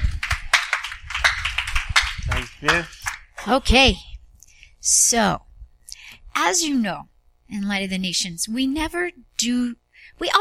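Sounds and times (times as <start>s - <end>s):
audience hand clapping: 0.0s - 3.3s
speech: 2.6s - 4.1s, 4.8s - 5.4s, 6.4s - 10.3s.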